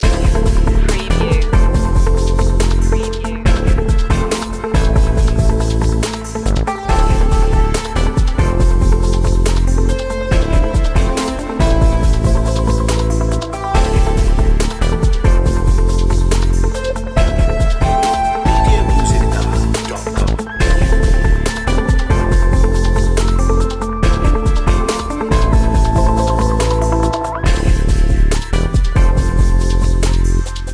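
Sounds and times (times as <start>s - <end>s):
urban groove main loop: 0.0s - 30.7s.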